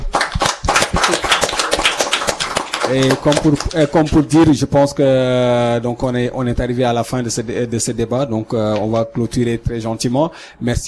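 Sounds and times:
crowd audience applause: 0.0s - 4.3s
speech: 2.9s - 10.8s.

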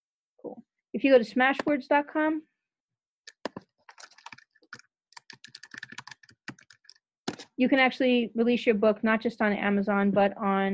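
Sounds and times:
speech: 0.4s - 2.5s, 7.6s - 10.7s
rapid typing on a computer keyboard: 3.3s - 7.5s.

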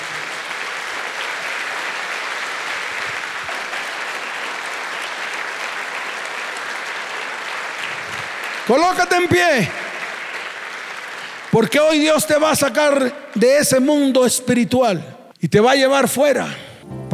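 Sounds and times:
audience applause: 0.0s - 13.6s
speech: 8.7s - 9.8s, 11.6s - 17.1s.

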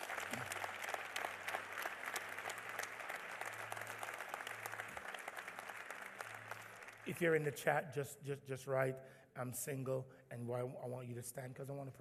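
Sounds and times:
audience applause: 0.0s - 7.4s
speech: 7.1s - 12.0s.

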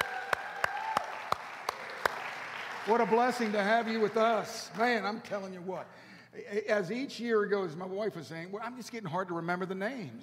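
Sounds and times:
audience applause: 0.0s - 4.8s
sharp rhythmic claps: 0.0s - 5.4s
speech: 2.9s - 10.2s.

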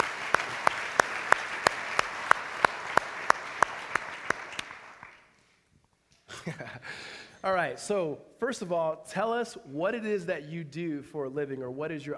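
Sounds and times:
audience applause welcoming a speaker onto a stage: 0.0s - 5.3s
speech: 6.5s - 12.1s.

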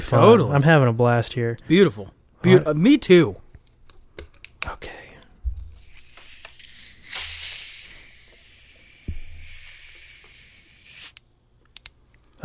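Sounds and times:
speech: 0.0s - 3.4s
soda fizzing while being poured: 5.8s - 11.2s.

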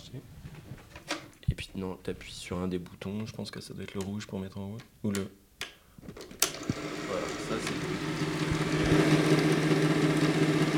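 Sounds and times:
speech: 0.1s - 0.3s, 1.8s - 5.4s
Super 8 film projector running: 6.4s - 10.7s.

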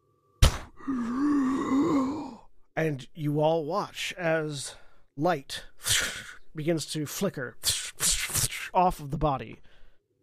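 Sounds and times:
booming gasp of breath from a corpse: 0.4s - 2.4s
speech: 0.8s - 1.4s, 2.8s - 7.8s, 8.7s - 9.7s.

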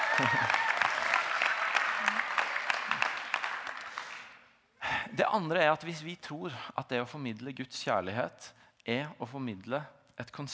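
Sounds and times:
audience clapping: 0.0s - 4.5s
speech: 0.2s - 0.6s, 5.2s - 10.5s.

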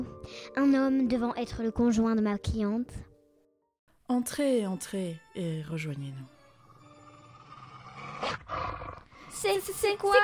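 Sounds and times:
speech: 0.0s - 3.1s, 4.1s - 6.4s, 9.4s - 10.2s
guard dog roaring: 7.3s - 9.1s.

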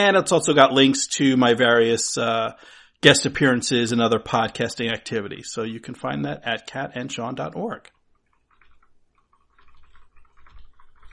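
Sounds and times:
speech: 0.0s - 8.0s
typing on a keyboard: 8.2s - 11.1s.

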